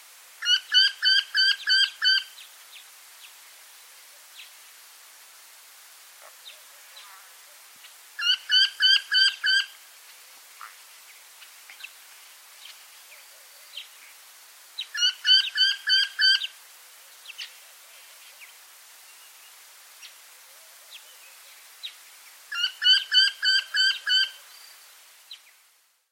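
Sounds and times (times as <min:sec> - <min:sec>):
wryneck call: 0:00.4 - 0:02.3, 0:08.2 - 0:09.8, 0:14.9 - 0:16.5, 0:22.5 - 0:24.4.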